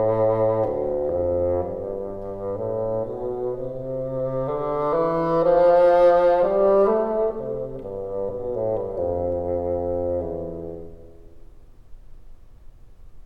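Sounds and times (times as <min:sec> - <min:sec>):
bassoon bottom register: 0:00.0 - 0:11.4.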